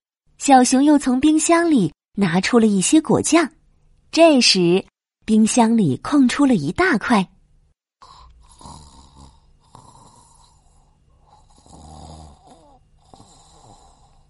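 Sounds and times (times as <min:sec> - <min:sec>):
speech: 0:00.5 - 0:07.3
snoring sound effect: 0:08.0 - 0:14.2.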